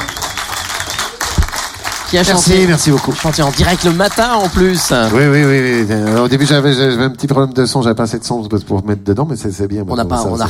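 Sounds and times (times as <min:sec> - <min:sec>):
audience applause: 0:00.0 - 0:07.0
speech: 0:02.1 - 0:10.4.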